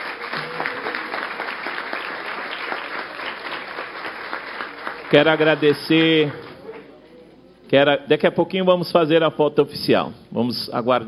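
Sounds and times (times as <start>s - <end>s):
crowd applauding: 0.0s - 6.9s
speech: 5.1s - 6.5s, 7.7s - 11.0s.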